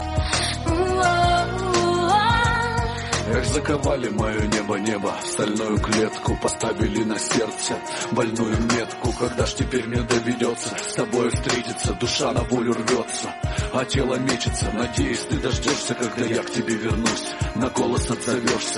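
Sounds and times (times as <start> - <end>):
Russian song: 0.0 - 18.7.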